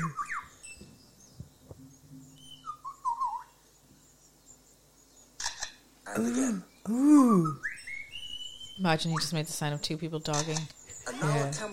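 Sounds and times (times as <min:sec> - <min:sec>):
bird mimicking camera with motor drive: 0:05.4 - 0:05.8, 0:10.3 - 0:10.8
speech: 0:06.2 - 0:07.6, 0:08.8 - 0:11.7.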